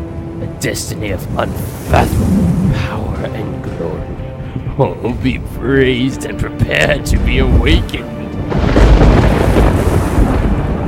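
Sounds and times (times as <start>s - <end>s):
speech: 0.4s - 8.2s
thunder rolling from gathering storm clouds: 1.2s - 4.8s, 7.0s - 10.8s.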